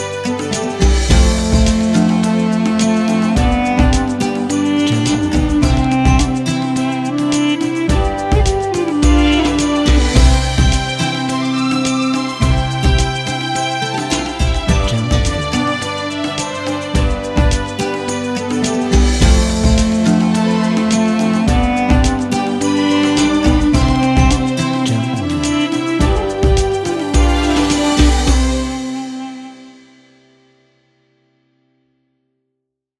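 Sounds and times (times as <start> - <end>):
Middle Eastern music: 0.0 - 30.8.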